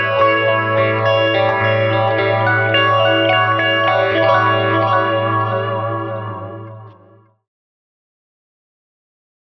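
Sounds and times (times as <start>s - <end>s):
electric guitar through Boss Katana 50 MKII with clean phaser delay: 0.0s - 7.4s.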